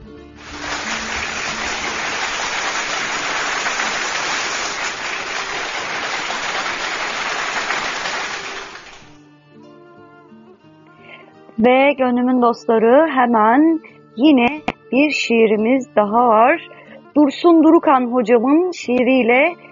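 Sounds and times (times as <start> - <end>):
applause: 0.4 - 9.2
speech: 11.6 - 19.7.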